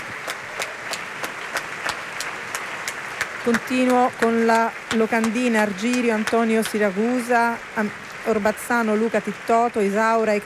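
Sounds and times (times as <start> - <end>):
applause from opera audience and orchestra: 0.0 - 10.4
speech: 3.4 - 10.4.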